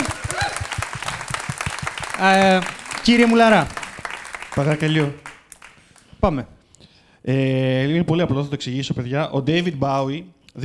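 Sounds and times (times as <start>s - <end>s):
applause from a small group: 0.0s - 6.1s
speech: 2.2s - 3.8s, 4.6s - 5.2s, 6.2s - 6.5s, 7.2s - 10.6s.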